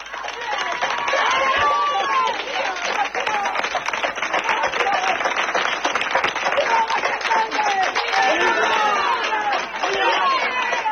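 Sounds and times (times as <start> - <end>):
villagers applauding: 0.0 - 10.9
villagers shouting and yelling: 0.3 - 3.5, 6.8 - 10.9.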